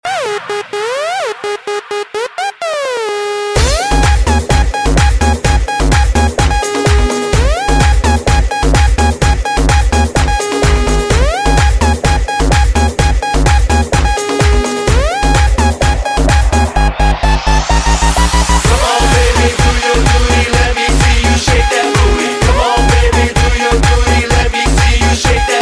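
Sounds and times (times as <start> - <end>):
techno music: 0.0 - 25.6.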